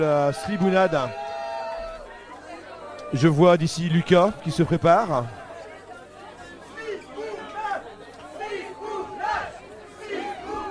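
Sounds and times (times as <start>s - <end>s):
speech: 0.0s - 1.3s, 3.1s - 5.4s
crowd chanting a name at a mock world-championship event: 6.7s - 10.6s.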